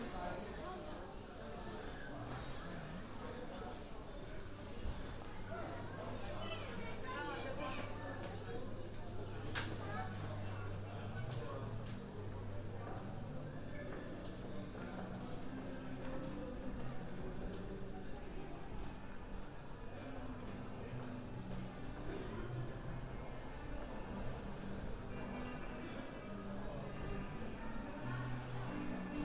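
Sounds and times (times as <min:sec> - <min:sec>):
crowd murmur in London on New Year's Eve: 0:00.0 - 0:29.2.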